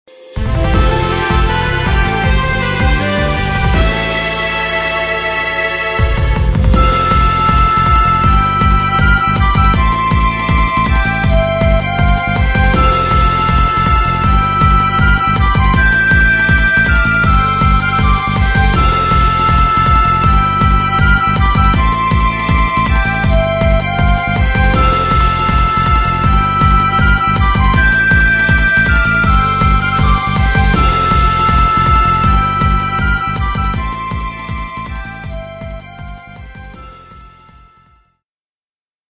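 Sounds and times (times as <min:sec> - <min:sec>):
fanfare: 0:00.1 - 0:37.6.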